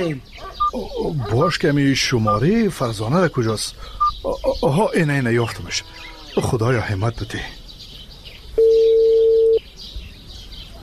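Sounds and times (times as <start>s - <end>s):
speech: 0.0s - 7.6s
low hiss: 0.1s - 10.8s
mobile phone call ring tone: 8.6s - 9.6s.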